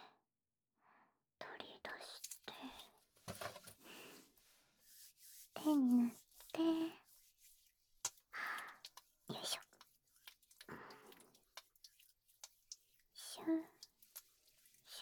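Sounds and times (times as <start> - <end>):
earlobe massage: 3.3 - 14.9.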